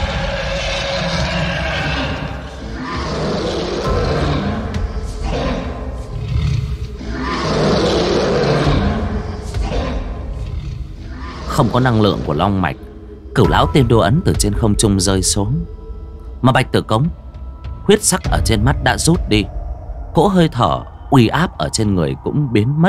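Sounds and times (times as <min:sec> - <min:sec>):
dragon roar sound effect: 0:00.0 - 0:12.8
speech: 0:11.6 - 0:15.8, 0:16.4 - 0:17.2, 0:17.8 - 0:19.6, 0:20.2 - 0:22.8.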